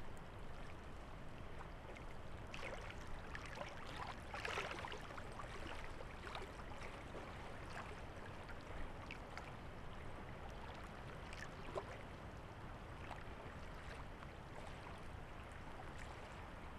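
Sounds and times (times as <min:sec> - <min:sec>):
lake waves: 0:00.4 - 0:16.7.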